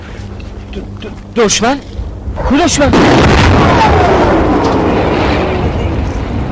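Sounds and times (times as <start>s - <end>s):
speech: 0.7s - 5.6s
artillery fire: 2.9s - 6.5s.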